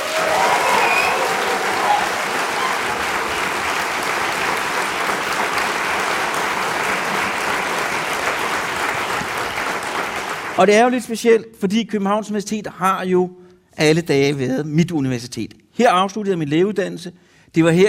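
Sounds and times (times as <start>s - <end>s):
audience applause: 0.0s - 10.7s
speech: 10.6s - 17.8s.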